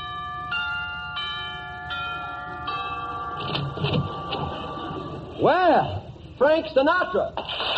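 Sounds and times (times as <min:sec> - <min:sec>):
doorbell ringing: 0:00.0 - 0:05.3
speech: 0:05.4 - 0:07.6.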